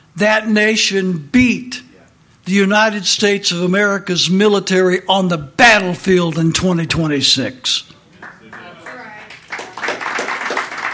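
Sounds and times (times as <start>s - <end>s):
speech: 0.2s - 1.9s, 2.5s - 7.9s
scattered audience clapping: 8.2s - 10.9s.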